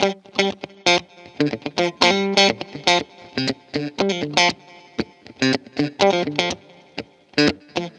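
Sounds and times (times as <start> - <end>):
disco guitar chord lick: 0.0 - 7.9.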